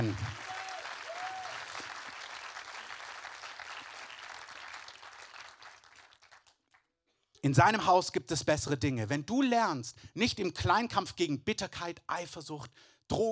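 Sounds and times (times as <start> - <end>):
speech: 0.0 - 0.4, 7.4 - 13.3
audience applause: 0.0 - 6.8.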